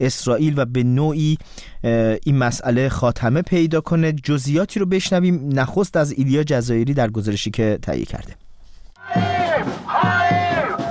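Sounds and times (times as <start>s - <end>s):
speech: 0.0s - 8.4s
crowd of thousands of protesters chanting at a demonstration in Tel Aviv: 9.0s - 10.8s.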